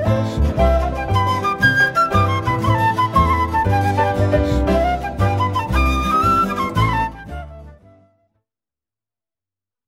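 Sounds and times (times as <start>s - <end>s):
jazz band playing: 0.0s - 7.6s.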